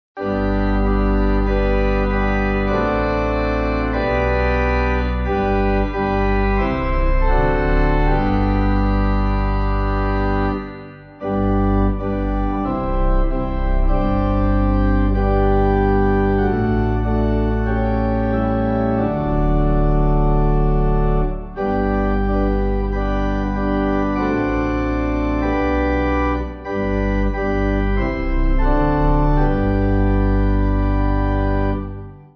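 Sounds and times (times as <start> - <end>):
pipe organ hymn backing: 0.2 - 32.3.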